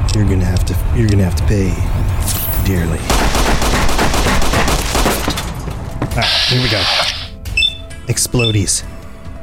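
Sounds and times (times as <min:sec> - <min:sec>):
speech: 0:00.2 - 0:03.8, 0:06.2 - 0:07.1, 0:08.1 - 0:09.0
rapid gunfire from the video game Fallout New Vegas: 0:03.1 - 0:05.6.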